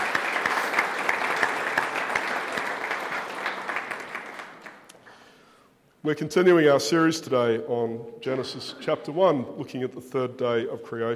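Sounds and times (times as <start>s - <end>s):
audience applauding welcoming a returning guest: 0.0s - 4.9s
speech: 6.0s - 11.1s.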